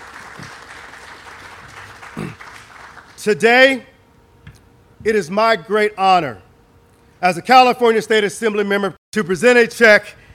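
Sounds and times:
crowd applause: 0:00.0 - 0:03.2
speech: 0:03.2 - 0:03.9, 0:05.0 - 0:06.4, 0:07.2 - 0:10.2.

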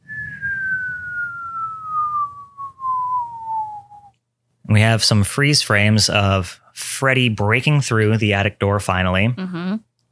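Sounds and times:
nuke missile whistling: 0:00.0 - 0:04.1
speech: 0:04.7 - 0:09.9.

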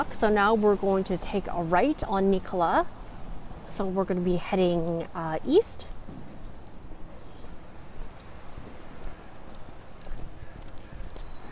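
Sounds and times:
speech: 0:00.0 - 0:03.0, 0:03.7 - 0:06.2
outdoor street noise: 0:00.0 - 0:11.5
footsteps walking along Nikola street: 0:05.9 - 0:11.5.

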